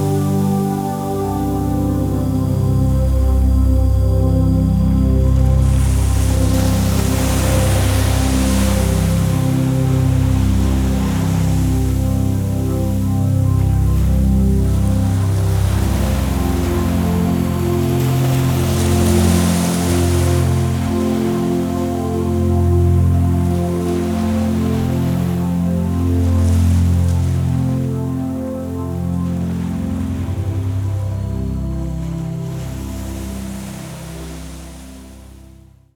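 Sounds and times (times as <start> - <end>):
ocean waves: 0.0 - 35.8
healing relaxation music: 0.0 - 35.9.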